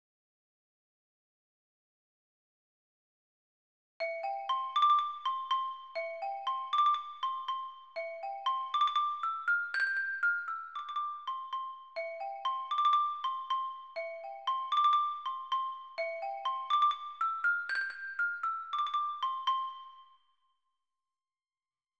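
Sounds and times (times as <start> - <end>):
xylophone: 4.0 - 20.3.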